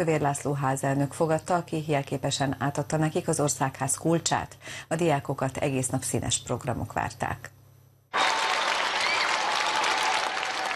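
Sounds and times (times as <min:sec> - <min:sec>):
speech: 0:00.0 - 0:07.6
loud applause: 0:08.1 - 0:10.7.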